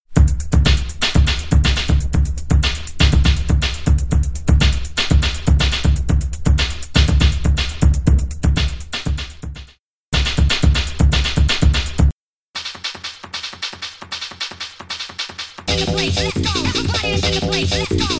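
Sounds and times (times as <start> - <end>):
music beat: 0.1 - 18.1.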